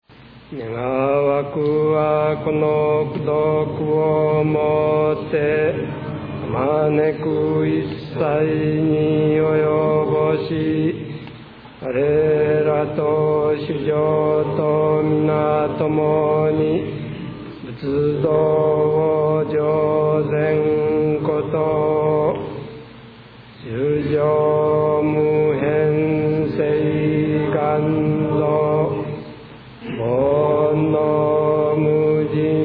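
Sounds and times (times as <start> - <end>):
end chant: 0.4 - 32.6.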